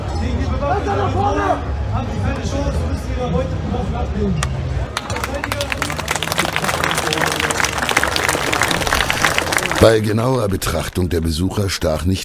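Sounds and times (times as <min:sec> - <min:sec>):
speech: 0:00.2 - 0:04.7, 0:09.8 - 0:12.2
audience applauding loudly: 0:04.9 - 0:10.5.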